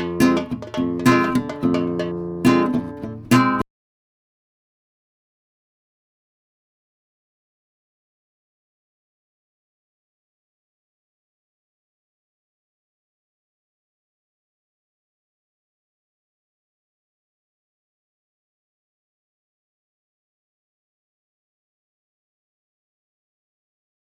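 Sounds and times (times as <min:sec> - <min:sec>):
guitar: 0:00.0 - 0:03.6.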